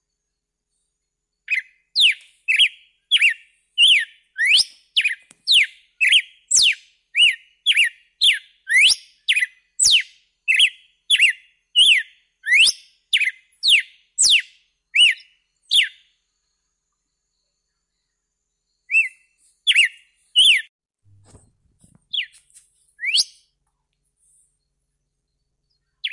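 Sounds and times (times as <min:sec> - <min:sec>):
red-cowled cardinal whistled song: 0:01.5 - 0:16.2, 0:18.0 - 0:20.7, 0:22.1 - 0:22.4, 0:23.0 - 0:23.5, 0:24.6 - 0:26.1.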